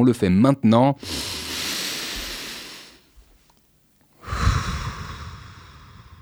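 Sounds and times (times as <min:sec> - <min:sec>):
speech: 0:00.0 - 0:01.4
deep exhale: 0:01.0 - 0:03.2, 0:04.2 - 0:06.2
deep inhale: 0:01.0 - 0:03.4, 0:04.2 - 0:06.2.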